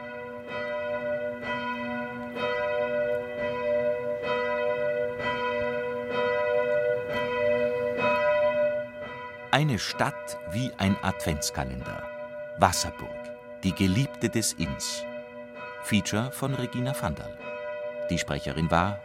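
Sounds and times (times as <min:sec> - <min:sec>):
church bells ringing at noon: 0:00.0 - 0:19.0
speech: 0:09.6 - 0:15.1, 0:15.8 - 0:17.4, 0:18.1 - 0:19.0.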